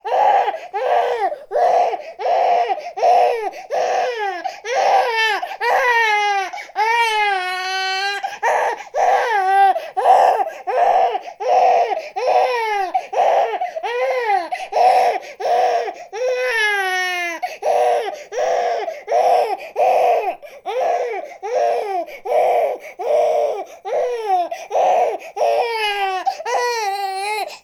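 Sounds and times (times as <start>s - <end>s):
baby crying: 0.0s - 27.6s.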